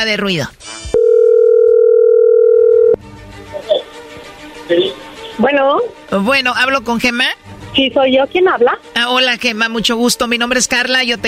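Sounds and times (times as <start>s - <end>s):
speech: 0.0s - 0.6s, 4.7s - 11.2s
telephone dial tone: 1.0s - 3.0s.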